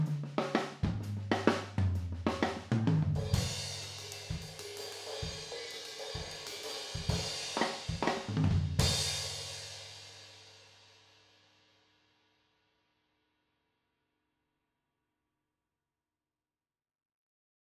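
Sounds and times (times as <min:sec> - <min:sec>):
drums recorded with rear Blumlein overheads: 0:00.0 - 0:11.3.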